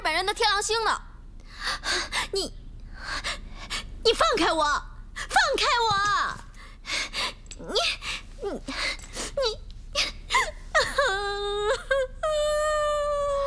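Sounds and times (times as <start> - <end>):
speech: 0.2 - 2.6, 4.0 - 6.4, 7.6 - 10.1
girl crying and wailing: 10.0 - 13.4.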